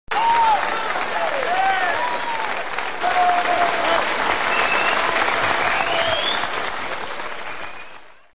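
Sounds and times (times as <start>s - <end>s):
applause: 0.1s - 8.3s.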